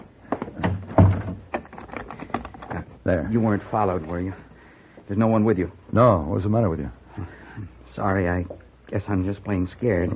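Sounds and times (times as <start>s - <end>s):
door closing: 0.0s - 2.8s
speech: 3.1s - 4.5s, 5.1s - 10.1s.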